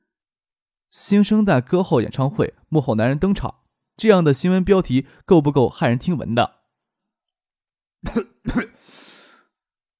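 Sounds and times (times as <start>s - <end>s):
speech: 0.9s - 6.6s, 8.0s - 8.8s
person coughing: 8.0s - 9.0s.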